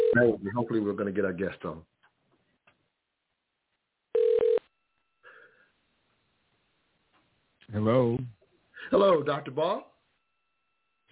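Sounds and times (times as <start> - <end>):
telephone ringing: 0.0 - 0.3, 4.2 - 4.7
speech: 0.2 - 2.0, 7.7 - 9.9.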